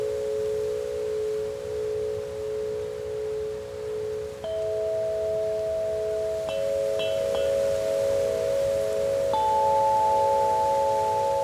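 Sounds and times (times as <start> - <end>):
faint breeze hiss: 0.0 - 11.4
wind chimes ringing in a soft breeze: 4.4 - 11.4.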